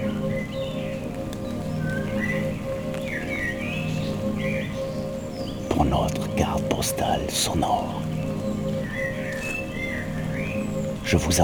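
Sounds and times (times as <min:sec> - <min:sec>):
birds chirping and whistling in a misty forest: 0:00.0 - 0:11.4
low wash: 0:00.0 - 0:11.4
patter of light rain: 0:00.0 - 0:11.4
speech: 0:05.8 - 0:08.0, 0:11.1 - 0:11.4.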